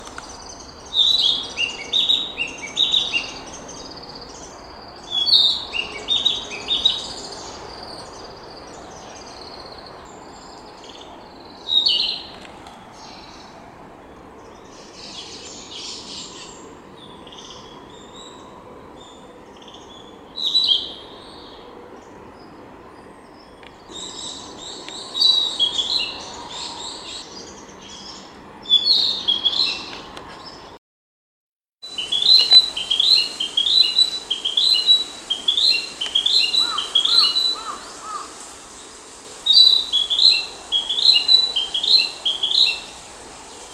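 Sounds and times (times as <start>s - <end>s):
narcissus flycatcher singing: 0.0s - 13.5s, 14.1s - 30.7s, 31.8s - 38.3s, 39.4s - 43.7s.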